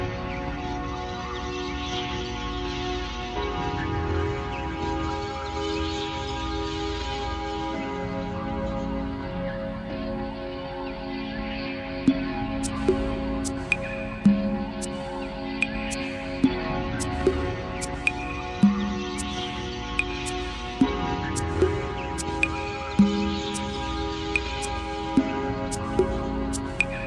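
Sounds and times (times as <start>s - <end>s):
ambient meditation music: 0.0s - 27.0s
city ambience: 9.0s - 27.0s.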